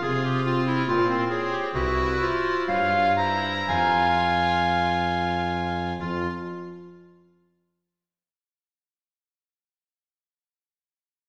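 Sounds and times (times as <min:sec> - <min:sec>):
melancholic klezmer music: 0:00.0 - 0:07.5.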